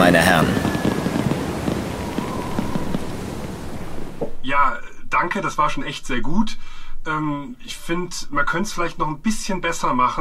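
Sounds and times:
faint whistling tone: 0:00.0 - 0:04.4
fireworks crackling and popping: 0:00.0 - 0:04.4
constant hiss: 0:00.0 - 0:10.1
speech: 0:04.5 - 0:10.1.

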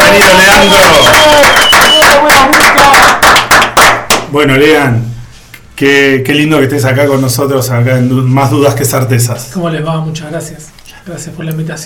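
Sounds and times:
studio audience applauding to welcome a musician guest on a talk show: 0:00.0 - 0:04.3
speech: 0:00.2 - 0:01.7, 0:04.4 - 0:05.2, 0:05.8 - 0:11.8.

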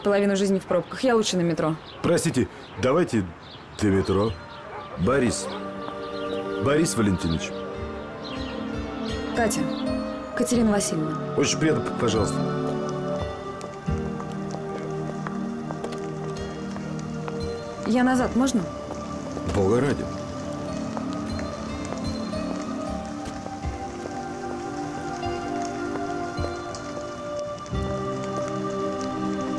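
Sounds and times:
speech: 0:00.0 - 0:05.7, 0:06.6 - 0:07.6, 0:09.4 - 0:12.7, 0:17.9 - 0:18.8, 0:19.6 - 0:20.1
rain falling: 0:00.0 - 0:29.5.

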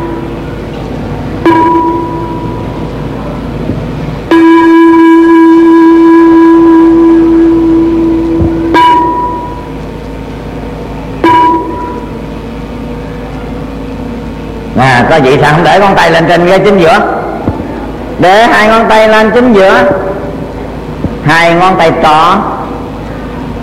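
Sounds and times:
bell ringing: 0:01.4 - 0:02.8, 0:04.3 - 0:09.8, 0:11.2 - 0:12.2
speech: 0:15.2 - 0:17.2, 0:18.2 - 0:20.1, 0:21.2 - 0:22.5.

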